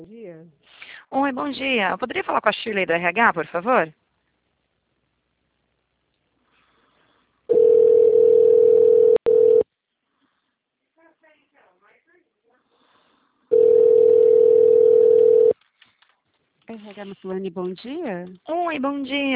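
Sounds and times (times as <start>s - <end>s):
speech: 0.0s - 4.0s, 16.7s - 19.3s
telephone dial tone after a dropped call to a city hall: 7.5s - 9.6s, 13.5s - 15.6s.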